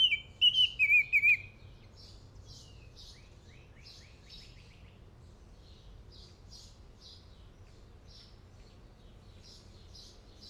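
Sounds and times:
Northern oriole singing clear whistles: 0:00.0 - 0:01.5.

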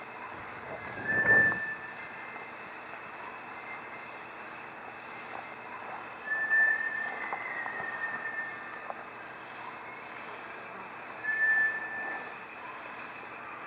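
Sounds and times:
Bartlett's tinamou calling with long pure whistled notes: 0:00.4 - 0:02.1, 0:06.3 - 0:08.9, 0:11.2 - 0:12.4.

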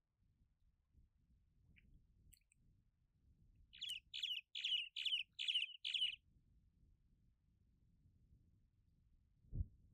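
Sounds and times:
Cuban martin chirping: 0:03.7 - 0:06.2.

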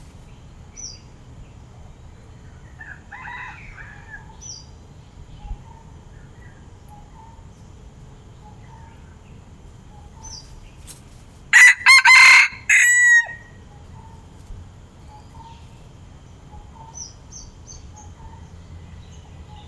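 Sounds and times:
red junglefowl brief broken crow: 0:02.6 - 0:04.3, 0:11.5 - 0:13.6.

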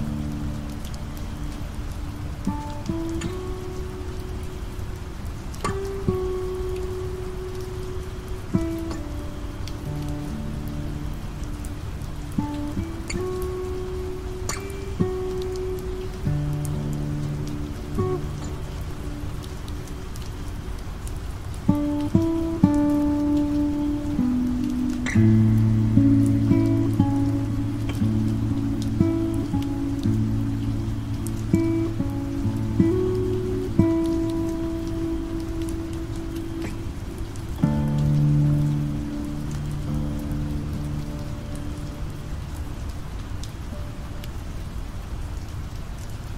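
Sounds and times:
guitar: 0:00.0 - 0:46.3
rain: 0:00.0 - 0:46.3.

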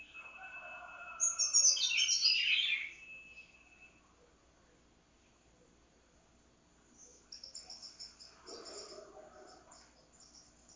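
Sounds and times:
Buff-throated saltator: 0:00.0 - 0:04.0, 0:06.9 - 0:10.7.

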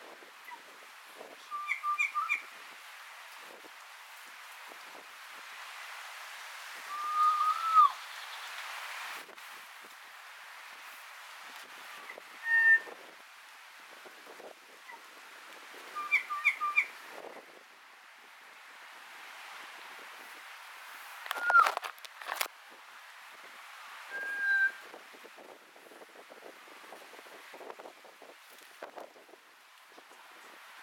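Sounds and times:
leaves rustling: 0:00.0 - 0:30.8
wind gusts: 0:00.0 - 0:30.8
Kōkako singing: 0:01.5 - 0:02.4, 0:06.9 - 0:08.0, 0:16.0 - 0:16.9, 0:21.3 - 0:21.7.

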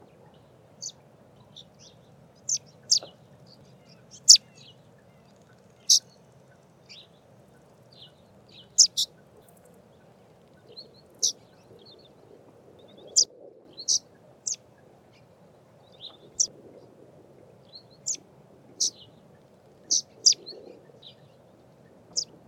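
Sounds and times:
low background hiss: 0:00.0 - 0:22.4
scaly-feathered weaver chirping: 0:08.8 - 0:09.1.

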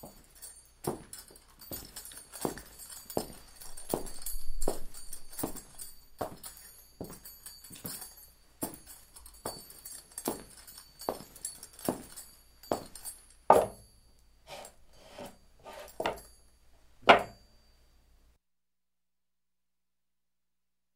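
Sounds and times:
cowboy boots footsteps: 0:00.0 - 0:13.9, 0:15.7 - 0:16.3.

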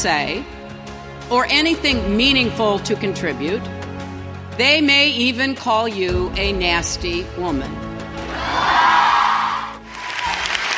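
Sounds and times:
speech: 0:00.0 - 0:00.6, 0:01.3 - 0:03.8, 0:04.6 - 0:08.9
audience applauding a speaker at Wellesley: 0:09.6 - 0:10.7.

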